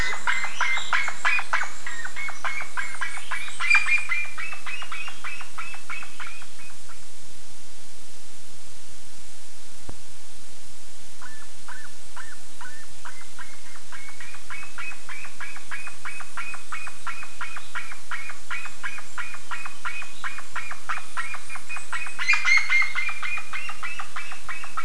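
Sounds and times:
harsh bird chirps: 0:00.0 - 0:07.0, 0:11.2 - 0:24.8.

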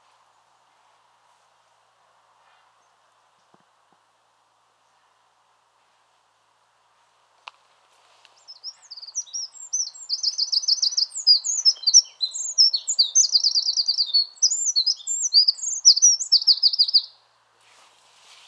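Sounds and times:
Eurasian wren singing trills: 0:08.5 - 0:17.1.

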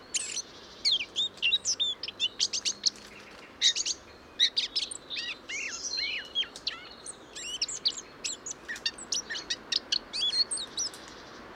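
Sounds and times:
Eurasian blackcap singing: 0:00.0 - 0:03.0, 0:03.6 - 0:11.1.

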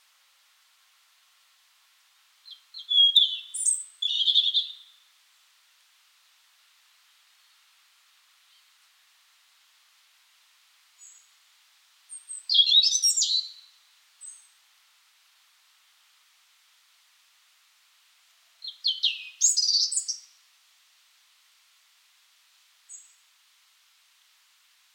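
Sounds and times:
European robin calling: 0:02.4 - 0:05.0, 0:12.1 - 0:14.5, 0:18.6 - 0:20.3.

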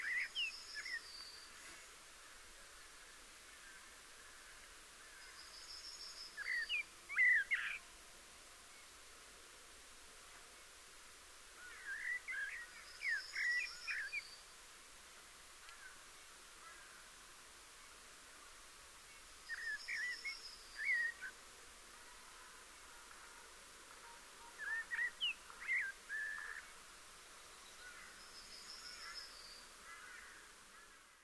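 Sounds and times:
Eurasian blackbird singing: 0:00.0 - 0:01.4, 0:05.3 - 0:07.8, 0:11.7 - 0:14.4, 0:19.5 - 0:21.3, 0:24.6 - 0:26.6
hiss: 0:00.0 - 0:31.2.

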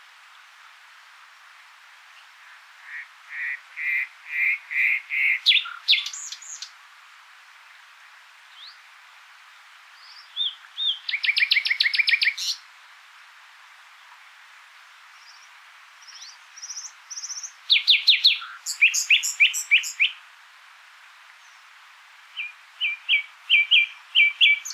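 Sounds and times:
common nightingale singing: 0:02.2 - 0:06.8, 0:10.0 - 0:12.6, 0:15.2 - 0:20.2, 0:22.3 - 0:24.7.

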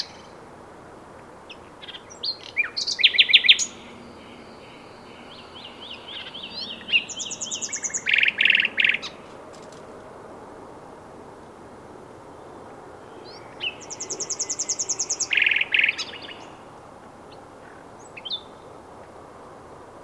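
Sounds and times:
common nightingale singing: 0:01.5 - 0:09.3, 0:13.0 - 0:18.5.

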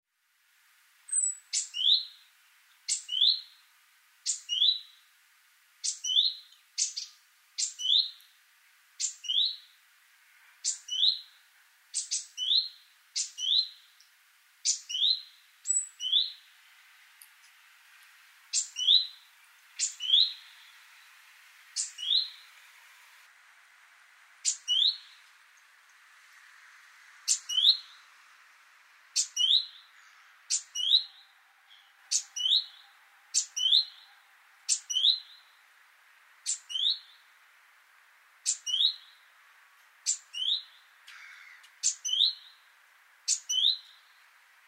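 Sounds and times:
background hiss: 0:00.1 - 0:44.6
great tit tick and rising whistle: 0:04.3 - 0:05.0, 0:05.8 - 0:08.2, 0:10.6 - 0:11.3, 0:12.0 - 0:13.8, 0:18.5 - 0:20.8, 0:21.8 - 0:22.5, 0:24.4 - 0:25.2, 0:27.3 - 0:28.0, 0:29.2 - 0:34.1, 0:34.7 - 0:35.6, 0:36.4 - 0:37.2, 0:38.4 - 0:39.2, 0:40.0 - 0:42.6, 0:43.3 - 0:44.1.

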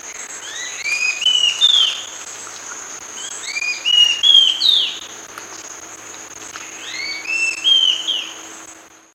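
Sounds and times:
high insect-like drone: 0:00.0 - 0:09.1
bird whistling: 0:00.4 - 0:02.1, 0:03.2 - 0:05.1, 0:06.8 - 0:08.4.

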